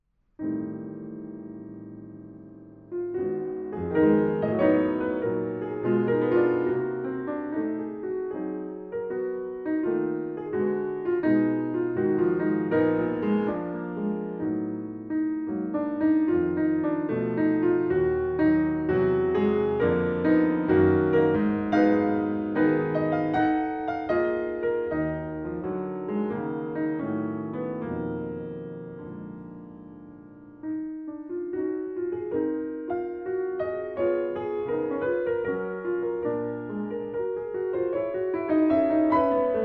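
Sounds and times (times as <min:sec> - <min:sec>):
solo piano: 0:00.0 - 0:39.6.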